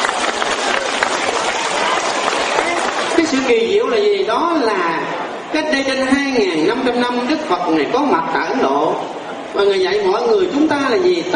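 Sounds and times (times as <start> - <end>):
applause: 0.0 - 3.6
speech: 3.3 - 11.3.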